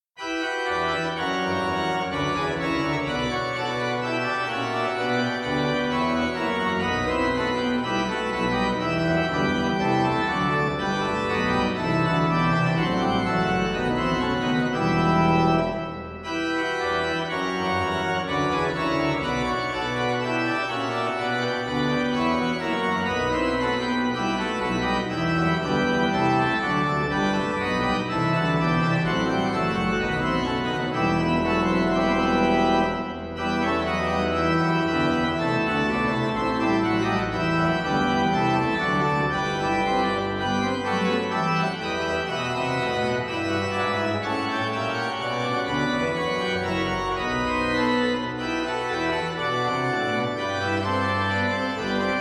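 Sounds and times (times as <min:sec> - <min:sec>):
organ music: 0:00.2 - 0:52.1.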